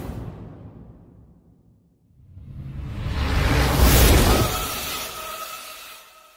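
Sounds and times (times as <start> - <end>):
cinematic sound effects: 2.3 - 6.3.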